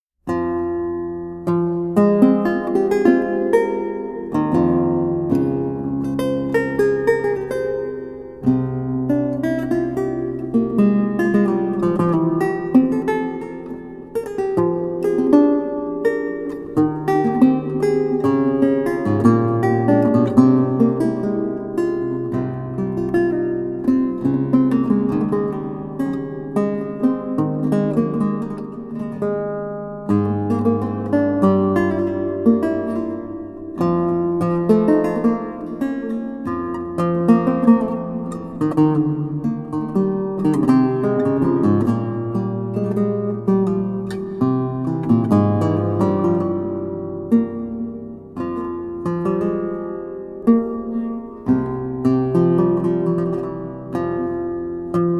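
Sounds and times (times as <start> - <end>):
prelude on lute: 0.2 - 55.1.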